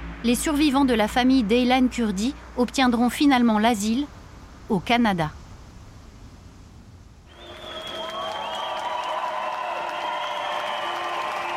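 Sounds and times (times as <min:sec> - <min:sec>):
speech: 0:00.2 - 0:05.4
crowd cheering and whistling: 0:07.3 - 0:11.5
welcoming crowd clapping: 0:07.3 - 0:11.5.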